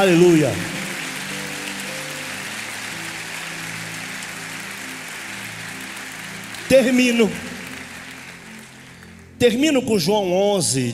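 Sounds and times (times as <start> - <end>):
speech: 0.0 - 0.7, 6.7 - 7.5, 9.4 - 10.9
crowd applauding: 0.0 - 9.5
low sustained musical tones: 0.0 - 10.9.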